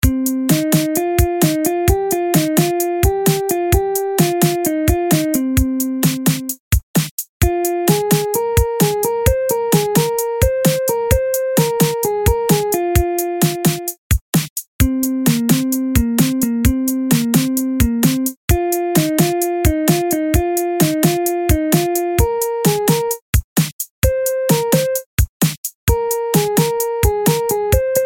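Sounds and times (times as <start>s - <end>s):
ringtone: 0.0s - 6.6s, 7.4s - 14.0s, 14.8s - 23.2s, 24.0s - 25.1s, 25.9s - 28.0s.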